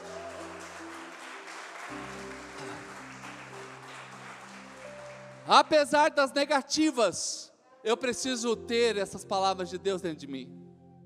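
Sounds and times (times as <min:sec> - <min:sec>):
audience clapping: 0:00.0 - 0:06.0
sustained keyboard chords: 0:00.0 - 0:06.4, 0:08.0 - 0:11.0
speech: 0:05.5 - 0:10.6.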